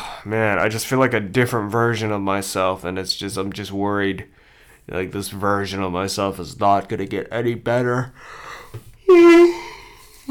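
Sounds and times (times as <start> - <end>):
speech: 0.2 - 9.7
person yawning: 9.1 - 10.3.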